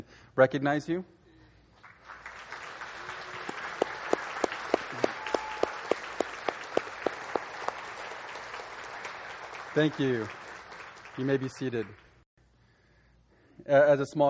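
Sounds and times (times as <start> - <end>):
speech: 0.4 - 1.2, 9.8 - 10.4, 11.2 - 12.0, 13.6 - 14.2
audience applause: 1.8 - 12.2.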